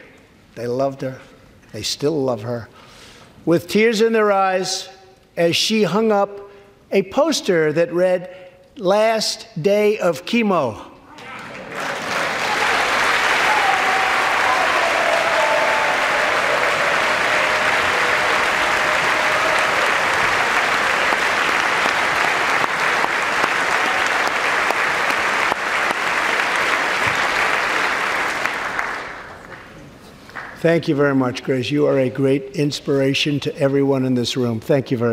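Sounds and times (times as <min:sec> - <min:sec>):
speech: 0:00.6 - 0:10.9, 0:30.6 - 0:35.1
polite applause from an audience: 0:11.2 - 0:30.6.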